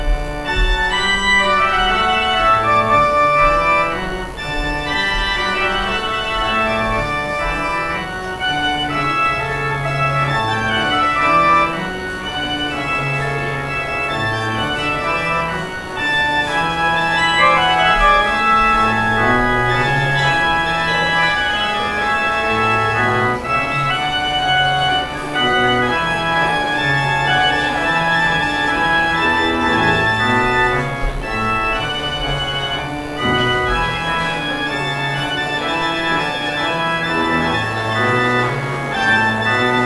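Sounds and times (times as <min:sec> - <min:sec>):
trumpet playing a voluntary: 0:00.0 - 0:39.8.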